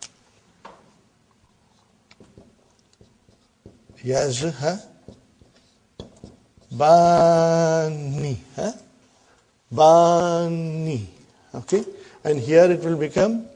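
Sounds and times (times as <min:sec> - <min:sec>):
teacher writing on a board: 0:01.7 - 0:07.7
speech: 0:04.0 - 0:04.9, 0:06.8 - 0:08.8, 0:09.7 - 0:13.5.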